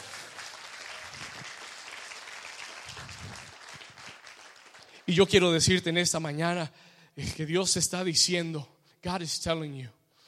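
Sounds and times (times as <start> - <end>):
audience applause: 0.0 - 5.1
speech: 5.1 - 10.0.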